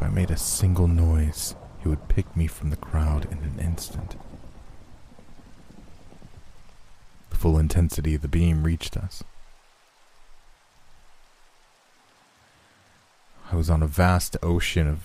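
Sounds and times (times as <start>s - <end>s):
thunder rumble: 0.0s - 9.5s
steady rain: 0.0s - 15.0s
speech: 0.2s - 4.3s, 7.4s - 9.3s, 13.5s - 15.0s.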